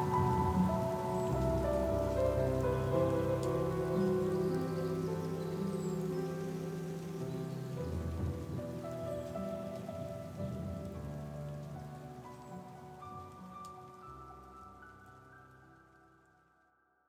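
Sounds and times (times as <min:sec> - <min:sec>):
thunder: 0:00.0 - 0:12.0
rain on a road: 0:00.0 - 0:16.5.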